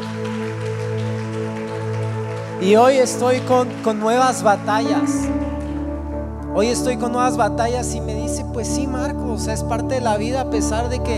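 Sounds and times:
audience applause: 0.0 - 7.2
speech: 2.6 - 5.4, 6.6 - 11.1.

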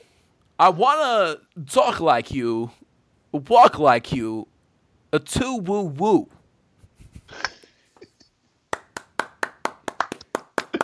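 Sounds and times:
speech: 0.6 - 4.5, 5.1 - 6.4
single person clapping: 8.7 - 10.8.

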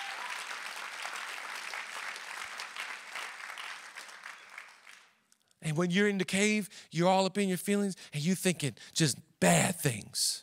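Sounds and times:
audience clapping: 0.0 - 5.3
speech: 5.7 - 10.4.

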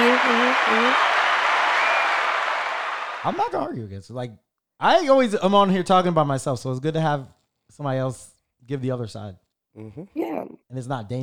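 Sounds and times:
hands clapping: 0.0 - 3.6
speech: 3.2 - 11.2.

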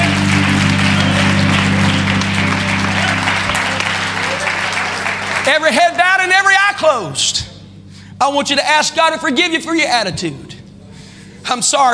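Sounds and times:
audience clapping hands: 0.0 - 6.0
speech: 5.6 - 6.0, 6.8 - 7.5, 8.2 - 10.6, 11.4 - 11.9.

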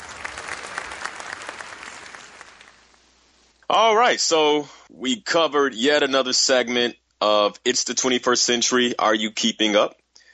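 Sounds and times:
audience applause after a speech: 0.0 - 2.9
speech: 3.7 - 10.0.

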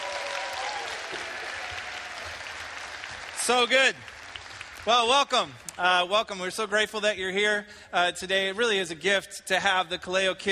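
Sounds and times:
audience applause for a group of kids: 0.0 - 5.6
speech: 3.5 - 4.1, 4.8 - 10.5.

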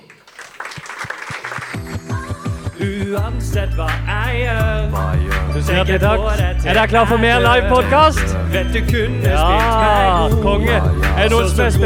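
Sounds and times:
audience applause: 0.0 - 3.1
low thumping beat: 2.8 - 11.8
speech: 2.8 - 11.8.

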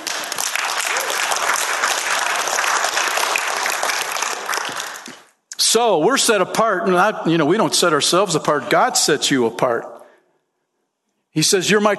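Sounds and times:
crowd applauding: 0.0 - 5.4
speech: 5.7 - 10.0, 11.4 - 11.9.

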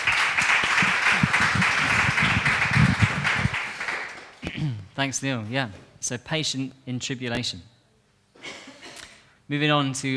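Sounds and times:
crowd applause: 0.0 - 4.4
speech: 5.0 - 7.7, 9.5 - 10.1.

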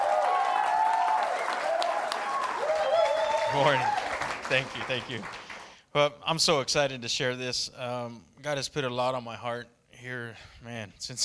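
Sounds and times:
audience applause welcoming a speaker: 0.0 - 5.8
speech: 3.5 - 5.4, 6.0 - 11.2.

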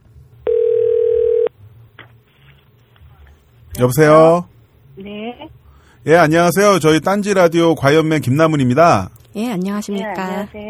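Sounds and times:
telephone ringback tone while a call connects: 0.5 - 1.5
speech: 3.8 - 5.2, 6.0 - 10.6.

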